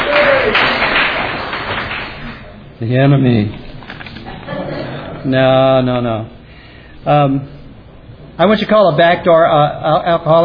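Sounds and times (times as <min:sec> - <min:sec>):
audience applause at an Alcoholics Anonymous meeting: 0:00.0 - 0:02.4
speech: 0:02.8 - 0:03.6, 0:05.2 - 0:06.4, 0:07.0 - 0:07.6, 0:08.4 - 0:10.4.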